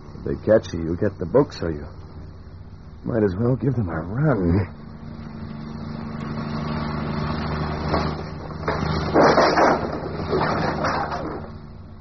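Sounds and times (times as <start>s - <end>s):
car engine humming: 0.0s - 11.9s
speech: 0.2s - 2.0s, 3.0s - 4.8s.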